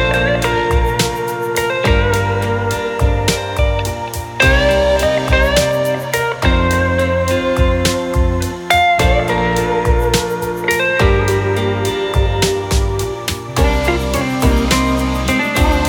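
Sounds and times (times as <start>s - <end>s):
sweet guitar playing: 0.0s - 15.8s.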